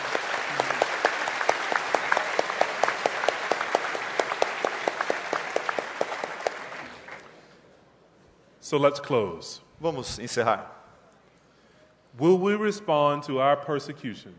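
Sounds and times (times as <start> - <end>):
audience applause: 0.0 - 7.4
speech: 8.7 - 10.8, 12.2 - 14.3.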